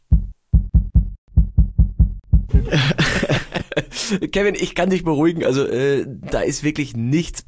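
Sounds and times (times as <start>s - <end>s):
heartbeat pulse at neck artery: 0.0s - 3.1s
laughter: 2.5s - 4.3s
speech: 2.7s - 3.1s, 4.1s - 7.4s.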